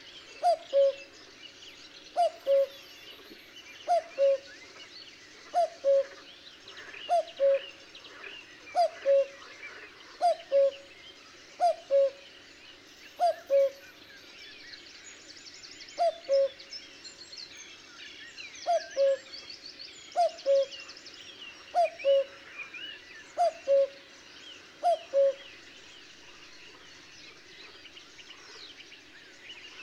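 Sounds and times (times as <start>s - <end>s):
small birds twittering: 0.0s - 29.8s
cuckoo calling: 0.4s - 1.1s, 2.2s - 2.9s, 3.8s - 4.5s, 5.5s - 6.2s, 7.1s - 7.7s, 8.7s - 9.4s, 10.2s - 10.8s, 11.6s - 12.2s, 13.2s - 13.9s, 16.0s - 16.6s, 18.6s - 19.3s, 20.2s - 20.7s, 21.7s - 22.3s, 23.4s - 24.0s, 24.8s - 25.5s.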